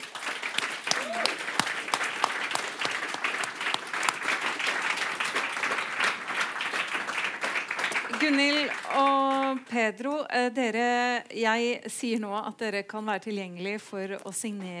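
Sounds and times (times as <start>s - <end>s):
audience applause: 0.0s - 9.7s
speech: 8.2s - 14.7s.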